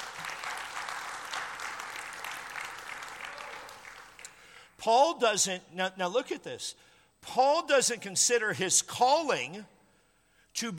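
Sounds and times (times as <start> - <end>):
audience applause: 0.0 - 4.2
speech: 4.8 - 9.8, 10.6 - 10.7.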